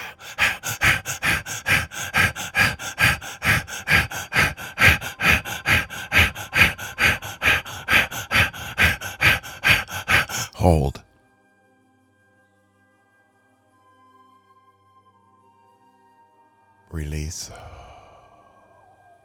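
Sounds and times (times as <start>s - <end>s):
rapid forceful breathing exercise: 0.0s - 11.0s, 17.1s - 18.6s
speech: 10.6s - 11.0s.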